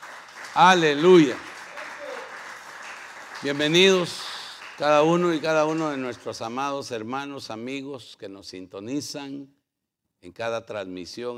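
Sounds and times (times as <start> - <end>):
audience applause: 0.0 - 6.5
speech: 0.6 - 1.4, 3.4 - 9.6, 10.2 - 11.3.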